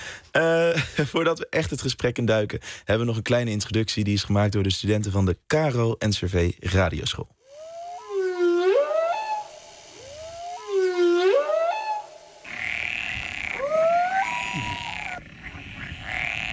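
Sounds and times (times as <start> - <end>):
speech: 0.4 - 7.4
whale song: 7.4 - 16.5.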